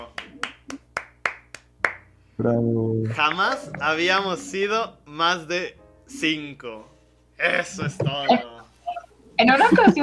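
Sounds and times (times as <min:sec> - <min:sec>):
applause from a small group: 0:00.0 - 0:02.1
speech: 0:02.4 - 0:08.6, 0:09.4 - 0:10.0
laughter: 0:07.5 - 0:10.0.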